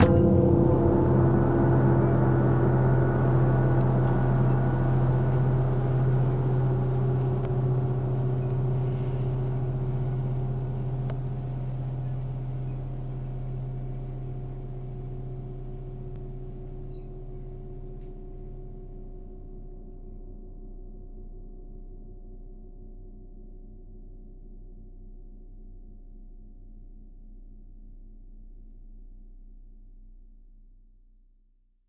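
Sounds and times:
huge gong: 0:00.0 - 0:20.0.

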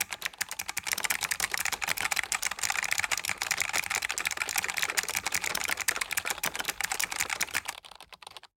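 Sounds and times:
typing: 0:00.0 - 0:08.5.

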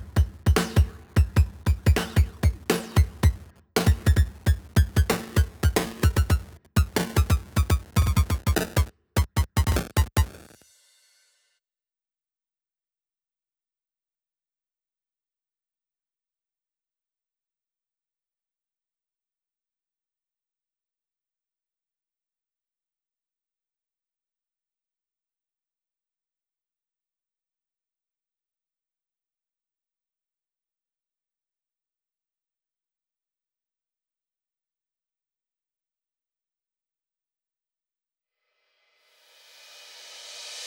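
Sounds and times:
drums: 0:00.0 - 0:11.2, 0:39.0 - 0:40.6.

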